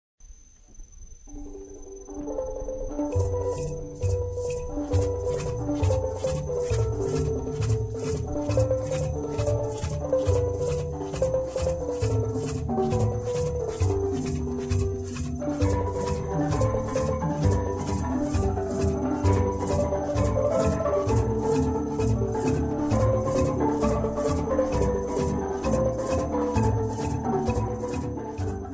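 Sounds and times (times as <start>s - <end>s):
steel band clash: 3.1s - 28.7s.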